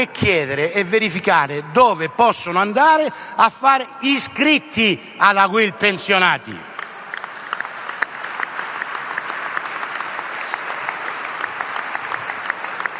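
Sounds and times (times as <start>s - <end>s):
speech: 0.0s - 6.7s
lukewarm audience applause: 6.7s - 12.9s.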